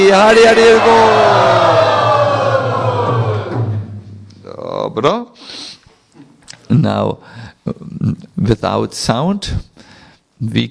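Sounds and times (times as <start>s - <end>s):
speech: 0.0s - 1.5s, 4.9s - 5.6s, 6.7s - 9.8s, 10.4s - 10.6s
crowd cheering and shouting in joy: 0.2s - 3.9s.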